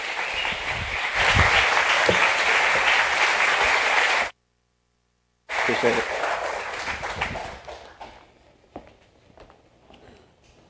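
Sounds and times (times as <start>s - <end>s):
audience applause welcoming guest speakers: 0.0s - 4.3s, 5.5s - 8.2s
speech: 5.8s - 6.2s.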